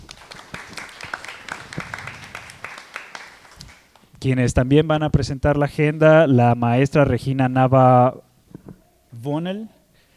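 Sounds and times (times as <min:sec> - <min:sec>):
audience applause: 0:00.0 - 0:04.0
speech: 0:04.2 - 0:08.2, 0:09.2 - 0:09.8.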